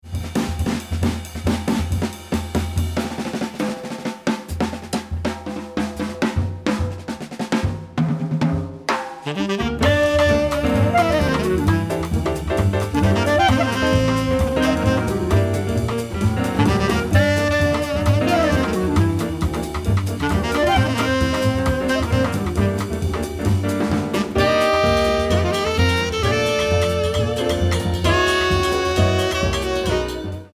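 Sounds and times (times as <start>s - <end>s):
groovy samba music: 0.1s - 30.5s.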